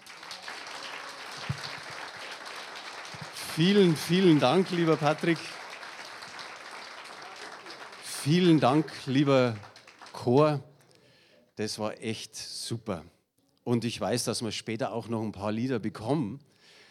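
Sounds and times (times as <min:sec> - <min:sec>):
audience applause for a choir: 0:00.0 - 0:10.6
speech: 0:03.6 - 0:05.6, 0:08.2 - 0:10.7, 0:11.6 - 0:16.5.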